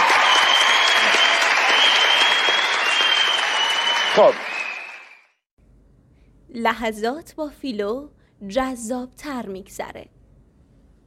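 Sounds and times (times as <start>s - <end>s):
studio audience applause in a standing ovation: 0.0s - 5.3s
speech: 4.2s - 4.5s, 6.5s - 10.2s.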